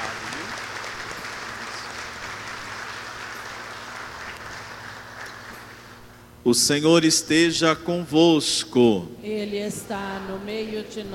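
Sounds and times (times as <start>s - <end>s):
applause: 0.0s - 5.6s
speech: 6.4s - 11.1s.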